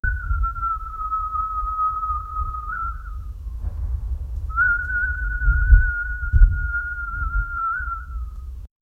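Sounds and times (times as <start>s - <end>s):
lone person whistling: 0.0s - 3.3s, 4.5s - 8.4s.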